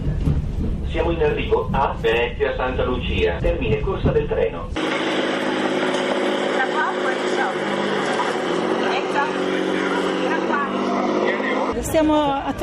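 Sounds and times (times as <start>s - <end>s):
speech: 0.9s - 5.6s, 11.8s - 12.6s
boat motor engines droning on the Grand Canal: 4.8s - 12.6s.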